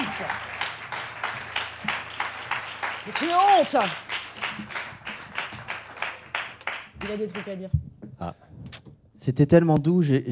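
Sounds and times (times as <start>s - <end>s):
audience applause: 0.0s - 7.6s
speech: 3.1s - 4.7s, 7.0s - 8.4s, 9.2s - 10.3s.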